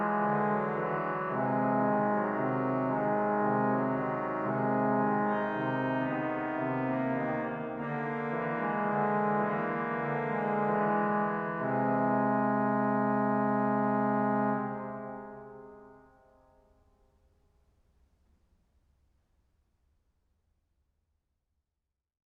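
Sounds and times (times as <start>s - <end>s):
horn playing: 0.0s - 10.9s, 11.6s - 15.6s.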